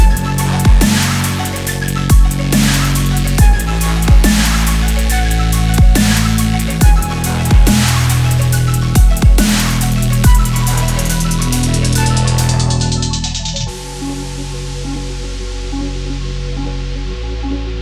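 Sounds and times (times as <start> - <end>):
extreme sports dubstep music: 0.0 - 17.8.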